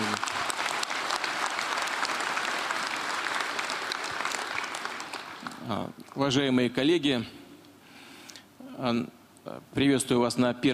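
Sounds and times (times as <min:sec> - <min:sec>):
audience applauding at the first conference of the All-Russian People's Front in Rostov-on-Don: 0:00.0 - 0:06.3
speech: 0:05.7 - 0:07.4, 0:08.8 - 0:10.7.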